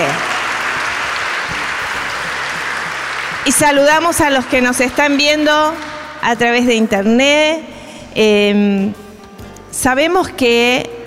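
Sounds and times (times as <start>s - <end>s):
audience applause: 0.0s - 6.2s
speech: 3.4s - 9.0s, 9.7s - 10.9s.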